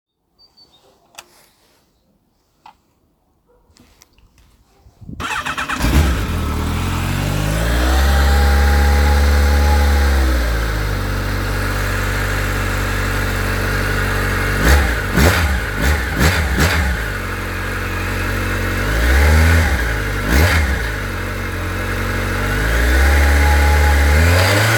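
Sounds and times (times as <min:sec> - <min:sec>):
Yamaha XJR1300 motorcycle engine with original exhaust: 0:05.2 - 0:24.7.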